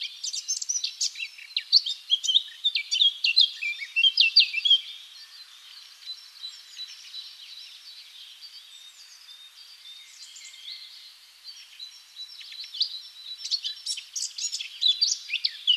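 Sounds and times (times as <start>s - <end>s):
Eurasian blackcap Sylvia atricapilla song: 0.0s - 15.7s.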